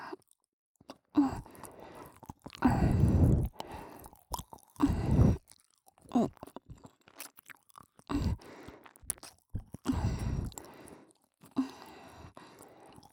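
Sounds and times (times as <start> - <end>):
ASMR chocolate sounds: 1.9 - 11.6.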